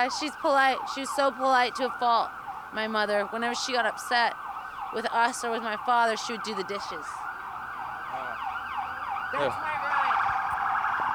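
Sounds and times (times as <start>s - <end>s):
speech: 0.0s - 7.2s, 9.3s - 9.7s
emergency vehicle siren wailing: 0.0s - 11.1s.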